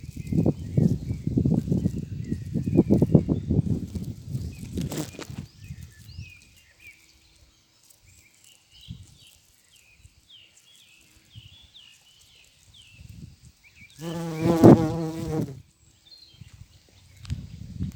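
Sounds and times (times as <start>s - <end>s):
bumblebee buzzing in flight: 0.1s - 6.1s, 14.0s - 15.6s.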